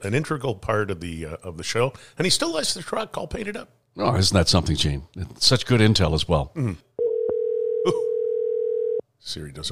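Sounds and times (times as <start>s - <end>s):
speech: 0.0s - 6.9s, 7.8s - 8.1s, 9.2s - 9.7s
phone dial tone while placing a call: 7.0s - 9.0s.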